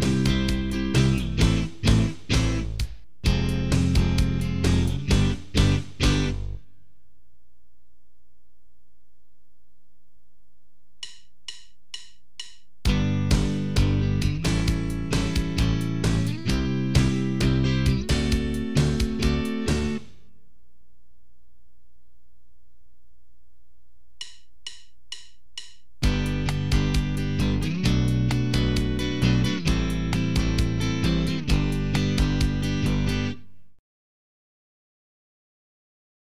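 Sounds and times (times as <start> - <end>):
guitar chord progressions using E-based barre chords: 0.0 - 6.7, 12.8 - 20.3, 26.0 - 33.6.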